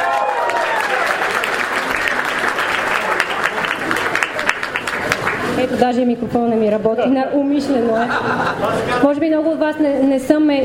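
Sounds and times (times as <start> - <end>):
audience applause: 0.0 - 5.6
speech: 5.8 - 10.6
laughter: 7.8 - 9.2.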